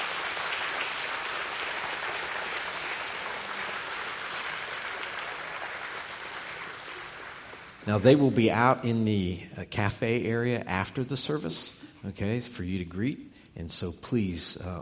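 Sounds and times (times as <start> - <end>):
warm round of applause: 0.0 - 7.9
speech: 7.9 - 14.8.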